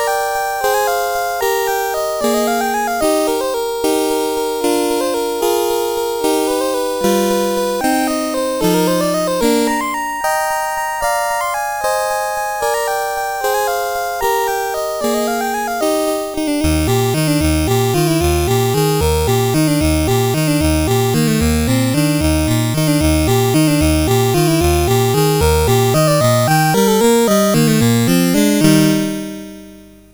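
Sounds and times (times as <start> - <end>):
waltz on CSG8580R5 chip: 0.0 - 30.1.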